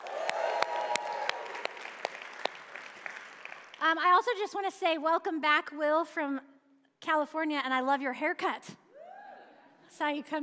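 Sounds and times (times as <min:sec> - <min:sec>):
audience cheering and applause: 0:00.0 - 0:03.8
speech: 0:03.8 - 0:06.5, 0:07.1 - 0:08.8, 0:09.9 - 0:10.4.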